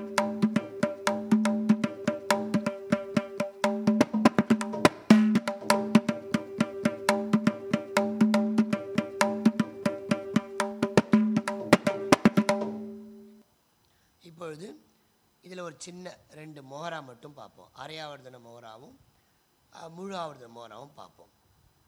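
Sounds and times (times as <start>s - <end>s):
carnatic music in mishra nadai: 0.0s - 13.4s.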